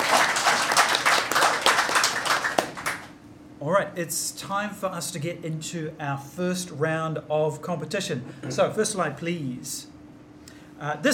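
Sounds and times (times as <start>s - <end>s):
audience applause: 0.0s - 3.1s
speech: 3.6s - 10.0s, 10.8s - 11.1s.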